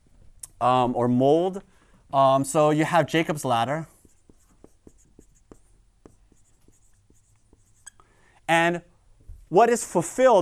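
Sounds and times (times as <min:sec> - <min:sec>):
speech: 0:00.6 - 0:03.9, 0:08.5 - 0:08.9, 0:09.5 - 0:10.4
handwriting strokes writing a word: 0:03.1 - 0:08.5.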